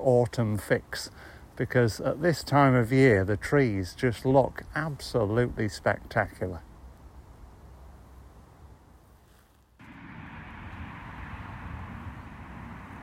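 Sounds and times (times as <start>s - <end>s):
speech: 0.0s - 6.7s
rumbling roar of road traffic: 9.8s - 13.0s.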